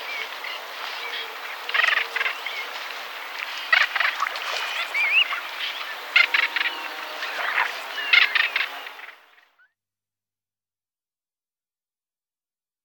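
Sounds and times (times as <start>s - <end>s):
little bittern calling: 1.0s - 9.6s.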